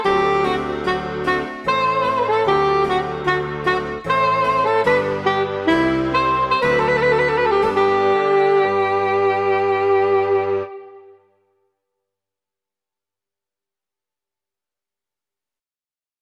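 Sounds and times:
saxophone minuet: 0:00.0 - 0:11.3.

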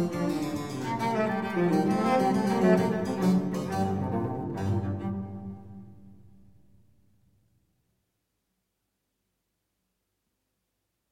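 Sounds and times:
cello playing sonata in G minor allegro: 0:00.0 - 0:06.5
basso continuo: 0:00.0 - 0:06.9.

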